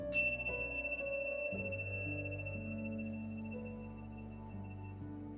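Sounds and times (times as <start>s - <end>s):
meditation bell: 0.1s - 5.2s.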